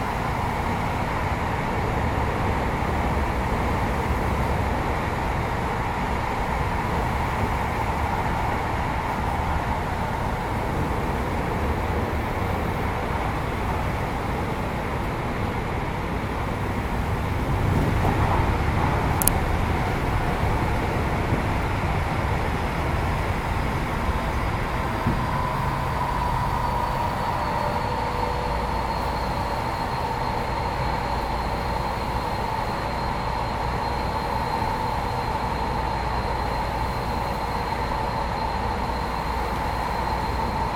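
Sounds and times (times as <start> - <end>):
Kyoto Municipal Subway Tozai Line 50 series train inverter sound: 0.0 - 40.7.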